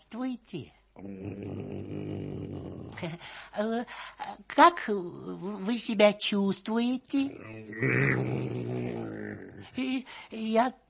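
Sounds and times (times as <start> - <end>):
speech: 0.0 - 2.1, 3.0 - 10.8
huge wolfhound dog growling in a neighbouring yard: 1.0 - 3.0, 7.3 - 9.8.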